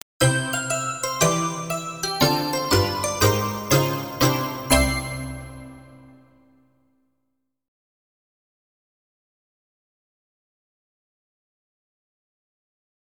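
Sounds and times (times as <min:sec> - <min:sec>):
jingle: 0:00.2 - 0:06.5.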